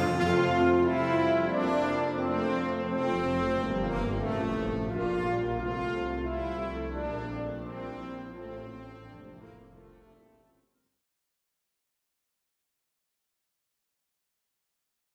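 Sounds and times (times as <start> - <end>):
festival fanfare for Christmas: 0.0 - 10.1.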